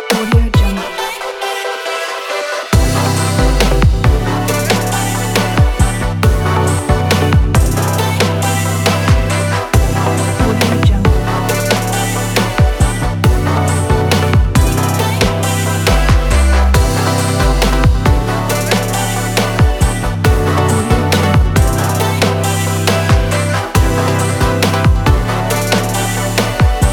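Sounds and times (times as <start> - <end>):
fashion trap music: 0.0 - 26.9.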